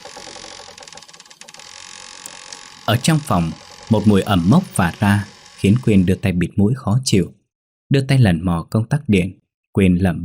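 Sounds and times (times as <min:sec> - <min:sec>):
old door creaking open: 0:00.0 - 0:06.2
speech: 0:02.9 - 0:10.2.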